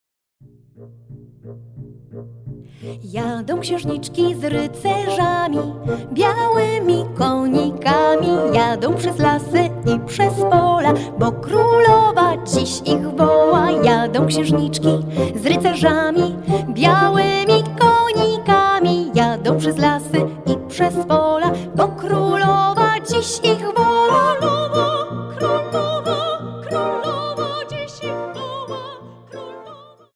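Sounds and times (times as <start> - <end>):
vocal version of music: 2.6 - 30.1.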